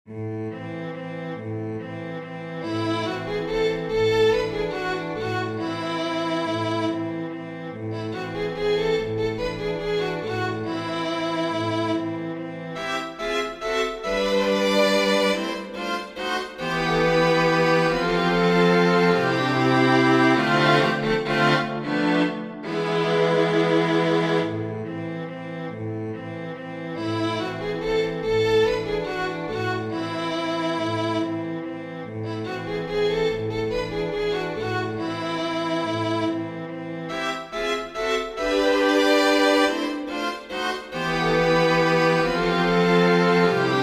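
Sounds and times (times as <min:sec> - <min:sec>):
string quartet: 0:00.1 - 0:43.8.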